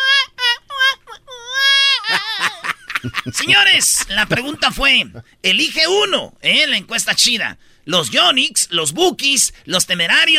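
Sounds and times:
voice imitating a little girl crying: 0.0s - 5.2s
laughter: 2.0s - 5.2s
speech: 3.0s - 10.3s.

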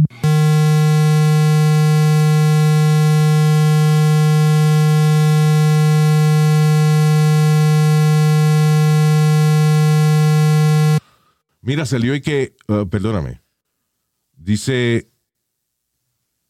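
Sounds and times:
brown noise tone: 0.1s - 11.0s
speech: 11.9s - 13.4s, 14.4s - 15.1s.

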